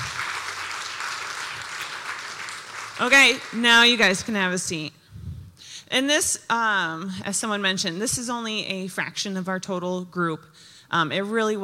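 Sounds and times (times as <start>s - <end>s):
audience applause at a church camp gathering: 0.0s - 4.2s
speech: 3.0s - 5.0s, 5.9s - 11.6s.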